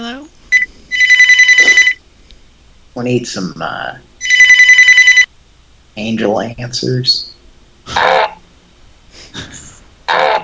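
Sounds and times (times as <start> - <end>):
telephone ringing: 0.5 - 2.0, 4.2 - 5.3
speech: 3.0 - 4.1, 6.0 - 7.3.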